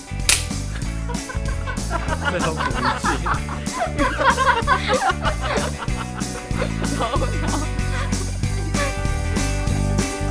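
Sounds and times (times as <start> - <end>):
sharp loud hand clap: 0.3 - 0.7
laughter: 0.7 - 9.3
speech: 2.2 - 7.8.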